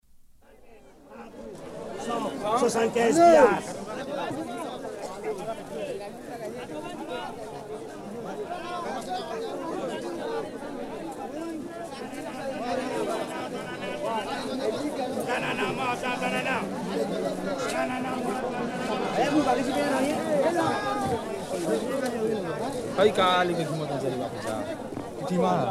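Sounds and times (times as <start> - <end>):
bazaar crowd ambience: 0.1 - 25.6.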